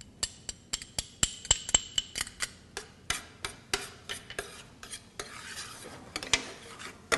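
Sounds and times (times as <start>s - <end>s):
spoon scraping a pot stirring shallots into cooking beans: 1.8s - 7.1s.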